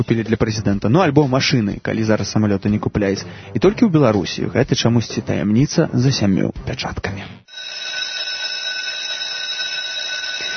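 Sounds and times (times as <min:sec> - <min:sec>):
speech: 0:00.0 - 0:07.8
electric school bell ringing: 0:07.5 - 0:10.5.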